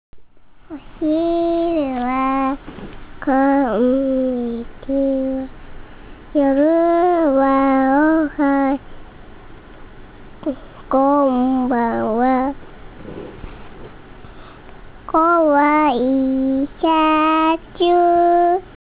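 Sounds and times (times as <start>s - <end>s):
girl singing: 0.7s - 5.5s, 6.4s - 8.8s, 10.4s - 12.6s, 15.1s - 18.8s.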